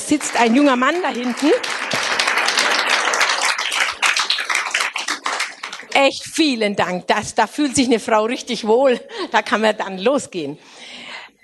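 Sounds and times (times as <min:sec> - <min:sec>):
crowd applauding: 0:00.0 - 0:06.1
speech: 0:00.1 - 0:01.9, 0:06.0 - 0:10.8.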